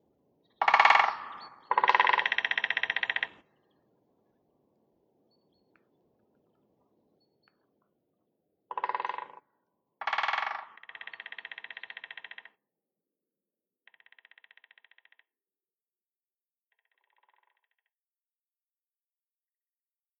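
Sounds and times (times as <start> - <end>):
woodpecker: 0.6 - 3.5, 8.7 - 9.4, 10.0 - 12.6, 13.9 - 15.3, 16.7 - 17.9.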